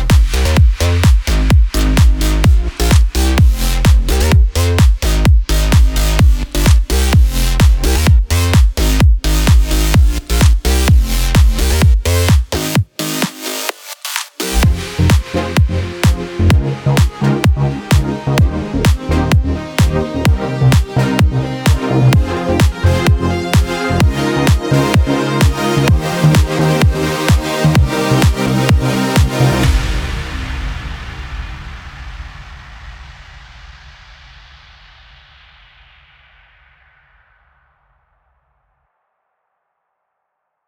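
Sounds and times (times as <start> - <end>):
big room future house music: 0.0 - 30.4.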